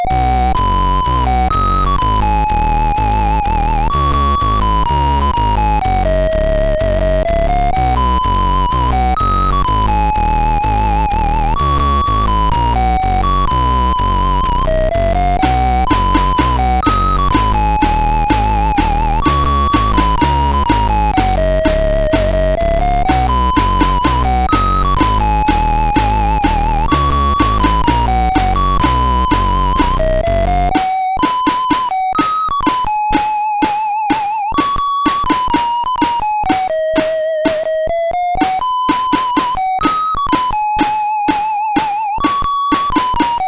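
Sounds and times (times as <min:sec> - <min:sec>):
military chiptune on SID CSG8580R5 chip: 0:00.2 - 0:43.4.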